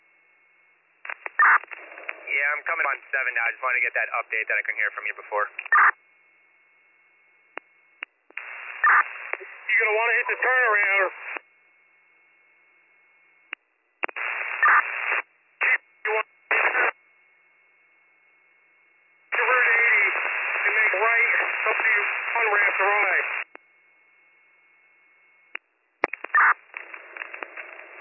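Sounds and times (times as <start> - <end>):
radio static crackling through a two-way radio: 1.0 - 6.4, 7.5 - 11.5, 14.0 - 17.0, 19.3 - 23.6, 25.5 - 27.9
speech: 2.4 - 6.0, 9.9 - 11.2.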